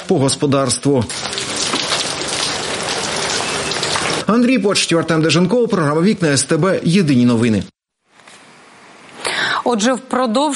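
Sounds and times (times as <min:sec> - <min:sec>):
speech: 0:00.1 - 0:01.5, 0:04.3 - 0:07.8, 0:09.6 - 0:10.5
heavy May rain: 0:01.1 - 0:04.3.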